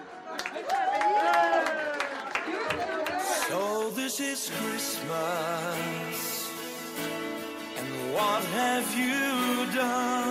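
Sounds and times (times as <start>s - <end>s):
audience applause: 0.0s - 4.1s
speech: 4.2s - 6.4s, 7.0s - 10.2s.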